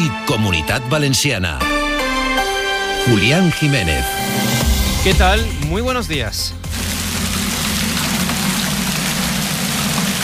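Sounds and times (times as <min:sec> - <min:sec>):
speech: 0:00.0 - 0:01.8, 0:03.0 - 0:06.8
hail falling during a storm in Castellfort, Castellón: 0:06.7 - 0:10.2.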